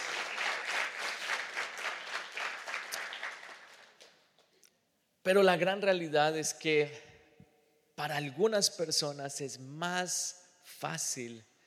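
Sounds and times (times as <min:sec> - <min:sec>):
audience applauding: 0:00.0 - 0:04.2
speech: 0:05.2 - 0:07.1, 0:08.0 - 0:11.5.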